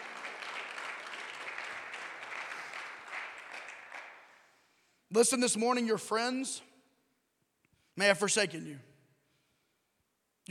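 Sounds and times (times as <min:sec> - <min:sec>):
audience clapping: 0:00.0 - 0:04.7
speech: 0:05.1 - 0:06.7, 0:08.0 - 0:08.9.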